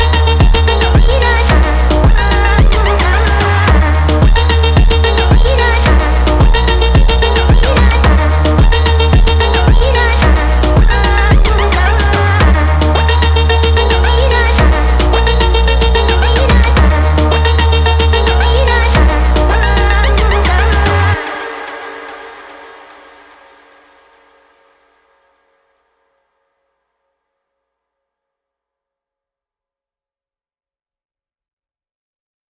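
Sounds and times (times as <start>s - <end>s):
sped up funk music: 0.0s - 21.0s.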